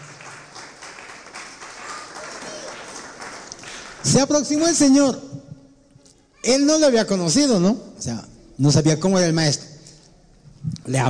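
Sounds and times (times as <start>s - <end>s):
crowd applauding: 0.0s - 4.8s
speech: 4.0s - 5.3s, 6.4s - 9.7s.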